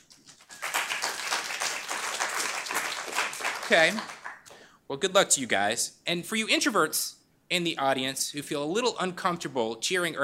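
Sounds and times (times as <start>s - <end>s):
audience applause: 0.3s - 4.5s
speech: 3.7s - 4.2s, 4.9s - 10.2s.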